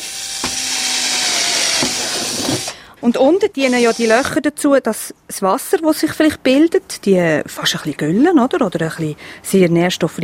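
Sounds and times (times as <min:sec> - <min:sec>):
cordless battery drill boring drainage holes: 0:00.0 - 0:02.8, 0:03.6 - 0:04.3
speech: 0:03.0 - 0:10.2.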